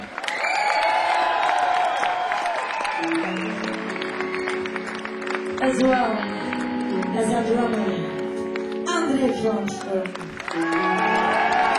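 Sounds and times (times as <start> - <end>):
crowd whooping: 0.0 - 5.1, 9.0 - 11.7
crowd applauding and cheering: 0.0 - 11.7
speech: 5.6 - 6.4, 7.2 - 8.0, 9.2 - 11.4.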